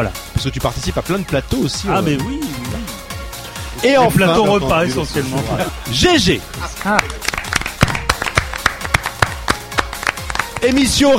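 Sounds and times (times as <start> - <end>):
speech: 0.0 - 2.7, 3.8 - 7.3, 10.6 - 11.1
applause: 6.6 - 11.1.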